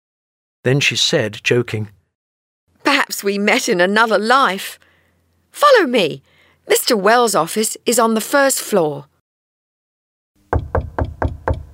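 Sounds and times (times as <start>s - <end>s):
speech: 0.6s - 2.0s, 2.9s - 4.9s, 5.5s - 9.1s
knocking on an office door: 10.5s - 11.7s.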